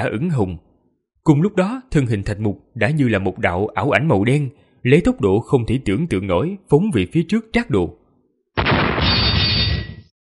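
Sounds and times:
speech: 0.0 - 8.0
metal weapons clashing: 9.0 - 10.0.

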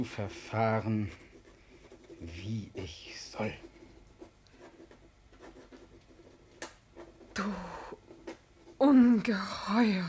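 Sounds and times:
speech: 0.0 - 1.3, 2.2 - 3.7, 7.4 - 8.0, 8.8 - 10.0
pen scratching on paper: 0.0 - 9.5.

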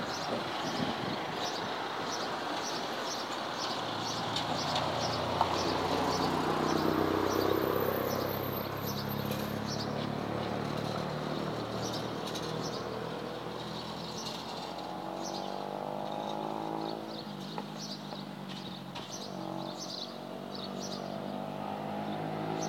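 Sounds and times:
birds singing at Castelli, altitude 2100: 0.0 - 10.1, 11.3 - 22.6.

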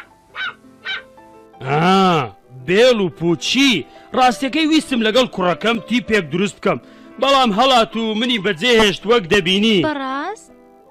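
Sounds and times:
puppy barking: 0.0 - 1.1
speech: 2.7 - 10.2.

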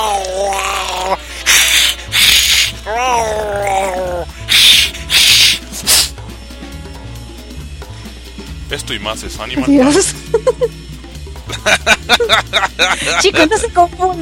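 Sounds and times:
angry cat yowling: 0.0 - 5.8
speech: 9.0 - 10.9, 11.6 - 14.1
laughter: 9.9 - 10.8, 11.5 - 13.8.

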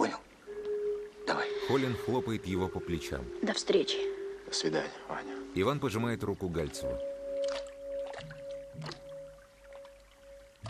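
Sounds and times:
speech: 1.4 - 7.7, 8.8 - 9.0
person walking knee-deep through water: 6.6 - 10.6.

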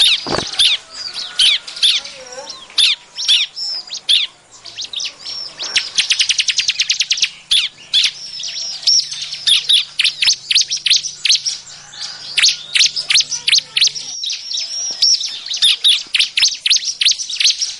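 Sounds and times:
bar-winged prinia calls: 0.0 - 17.7.

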